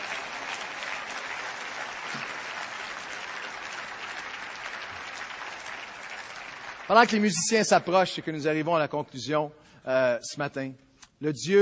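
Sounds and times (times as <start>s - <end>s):
audience applause: 0.0s - 8.5s
speech: 6.9s - 11.6s.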